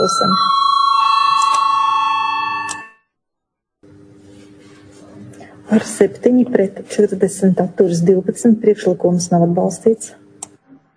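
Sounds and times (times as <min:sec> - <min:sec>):
speech: 0:00.0 - 0:00.8, 0:05.7 - 0:10.2
electric bell rung in a parliament chamber to call a vote: 0:00.0 - 0:03.1.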